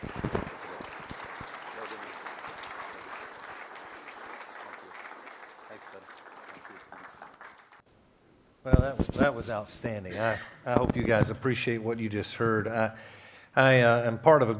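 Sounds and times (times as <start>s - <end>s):
audience applause: 0.0s - 7.8s
speech: 8.8s - 14.5s.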